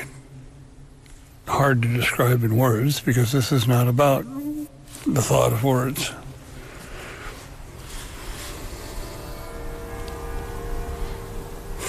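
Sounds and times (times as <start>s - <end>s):
speech: 1.6s - 4.4s, 5.1s - 6.2s
city hall bells ringing: 8.6s - 11.8s.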